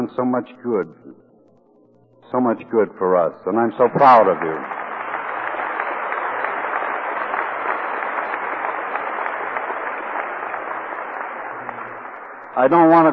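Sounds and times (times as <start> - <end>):
speech: 0.1 - 1.2, 2.3 - 4.8, 12.6 - 13.1
audience applause: 3.7 - 13.1.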